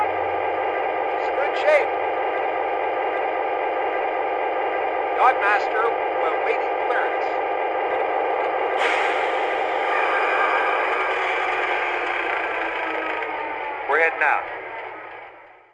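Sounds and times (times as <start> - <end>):
EMD F3 A locomotive: 0.0 - 15.7.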